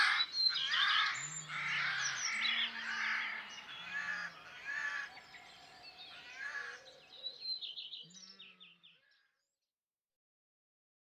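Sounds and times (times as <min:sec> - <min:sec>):
Eurasian jay calling: 0:00.0 - 0:05.2.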